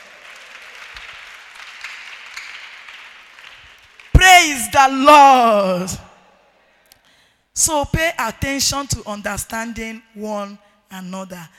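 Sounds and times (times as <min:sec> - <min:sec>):
audience applause: 0:00.0 - 0:04.2
speech: 0:04.4 - 0:06.1, 0:07.6 - 0:11.5.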